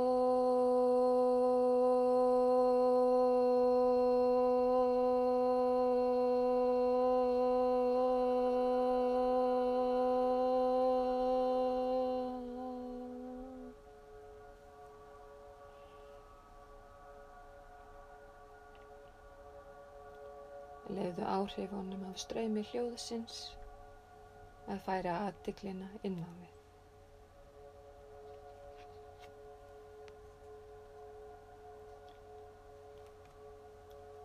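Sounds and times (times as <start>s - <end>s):
group chanting om: 0.0s - 13.8s
speech: 21.4s - 23.6s, 24.7s - 26.6s.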